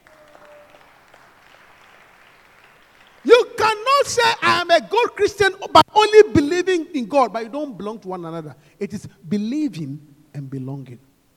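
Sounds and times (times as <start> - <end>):
crowd applauding: 0.0 - 3.9
speech: 4.0 - 11.1.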